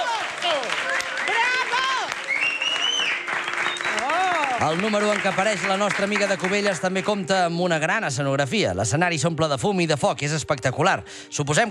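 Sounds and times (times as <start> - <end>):
audience applause and ovation: 0.0 - 7.3
speech: 4.6 - 11.6.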